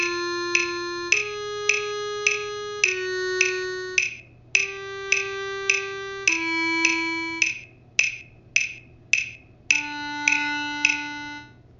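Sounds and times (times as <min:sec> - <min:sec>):
clarinet: 0:00.0 - 0:07.5, 0:09.7 - 0:11.6.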